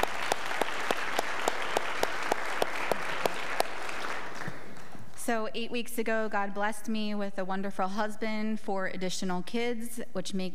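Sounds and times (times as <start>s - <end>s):
rhythmic sharp claps: 0.0s - 4.9s
church congregation applauding a newly married couple: 0.0s - 5.0s
speech: 5.3s - 10.5s.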